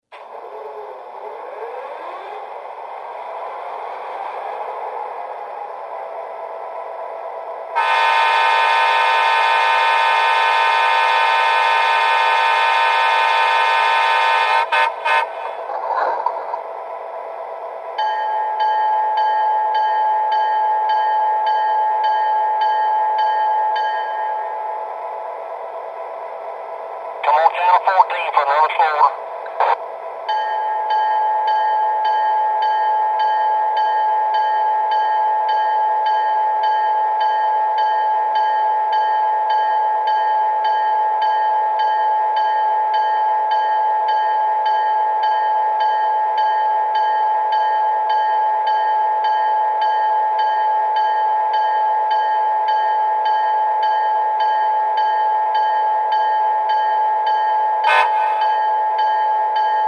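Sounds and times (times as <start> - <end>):
SD40-2 diesel locomotive: 0.0 - 59.8.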